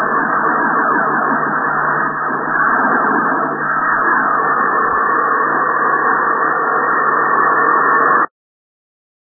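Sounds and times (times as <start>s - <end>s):
28 MHz radio tuning: 0.0s - 8.3s.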